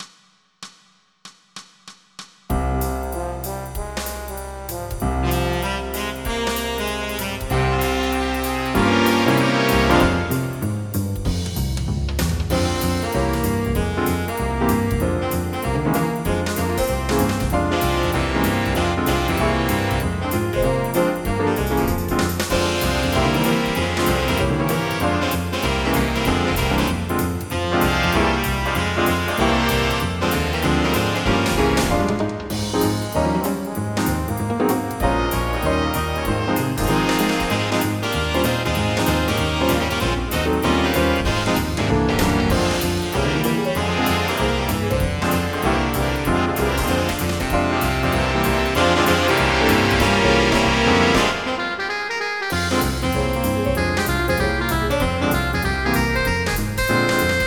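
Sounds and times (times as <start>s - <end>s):
music: 0.0s - 57.4s.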